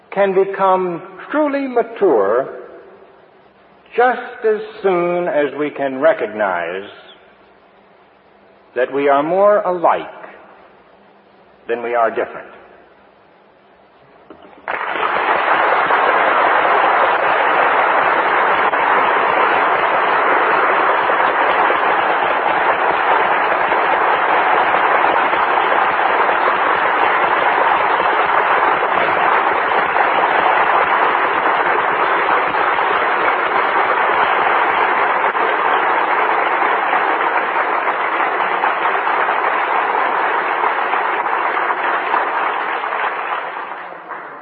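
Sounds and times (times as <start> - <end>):
speech: 0.2 - 2.6, 3.9 - 7.0, 8.7 - 10.2, 11.7 - 12.6
audience applause: 14.6 - 44.4.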